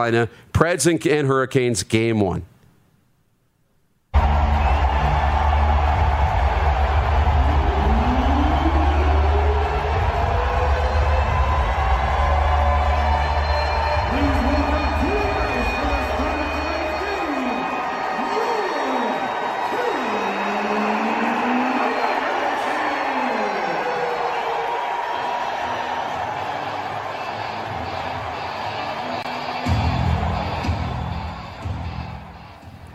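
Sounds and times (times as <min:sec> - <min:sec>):
speech: 0:00.0 - 0:02.5
song playing in a hockey arena: 0:04.2 - 0:22.6, 0:26.3 - 0:32.9
hockey arena crowd roaring: 0:04.2 - 0:32.4.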